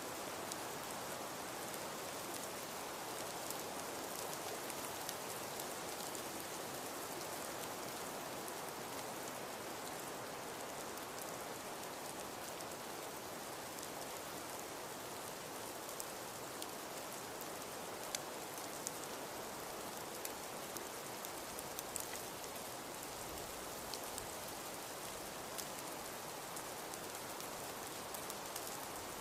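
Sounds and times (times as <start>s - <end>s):
snowfall: 0.0s - 29.2s.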